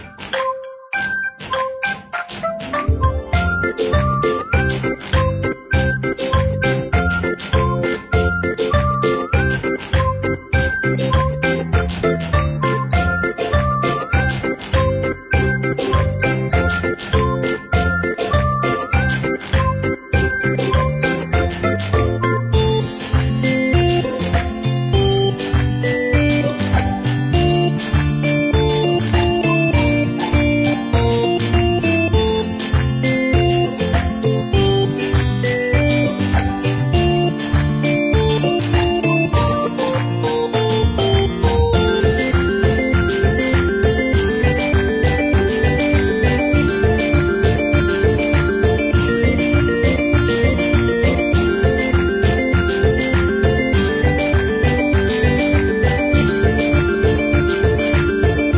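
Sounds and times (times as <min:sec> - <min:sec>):
game level music: 0:00.0 - 0:58.5.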